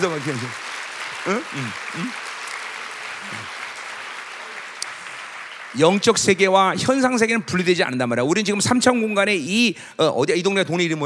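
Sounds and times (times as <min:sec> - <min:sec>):
speech: 0:00.0 - 0:02.3, 0:03.2 - 0:03.6, 0:05.7 - 0:11.0
audience applause: 0:00.0 - 0:07.4.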